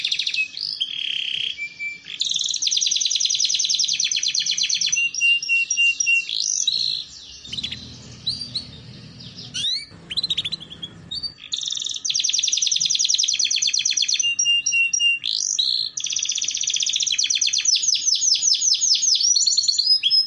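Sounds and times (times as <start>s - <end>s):
canary singing: 0.0s - 19.2s.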